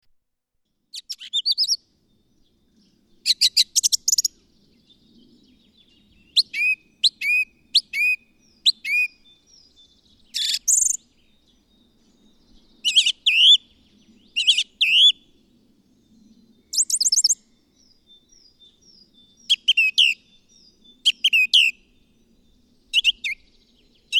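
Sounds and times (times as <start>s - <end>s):
bird song with chirps and whistled notes: 1.0s - 1.8s, 6.3s - 9.3s, 12.8s - 13.6s, 14.4s - 15.2s, 16.7s - 17.4s, 19.2s - 20.4s, 21.0s - 21.8s, 22.9s - 23.5s.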